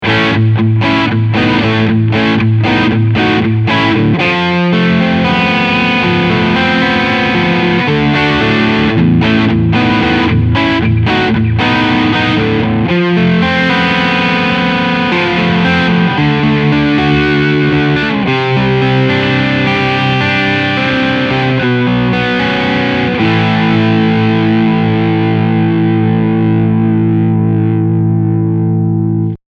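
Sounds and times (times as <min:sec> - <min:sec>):
overdriven bass: 0:00.0 - 0:29.4.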